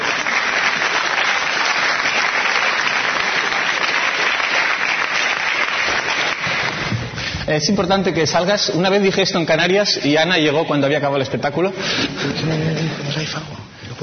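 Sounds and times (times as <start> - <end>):
audience applause: 0.0 - 7.3
speech: 7.5 - 14.0.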